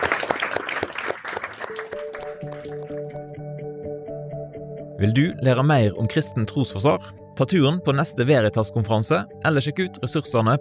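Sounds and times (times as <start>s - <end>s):
audience applause: 0.0s - 3.3s
speech: 5.0s - 10.5s.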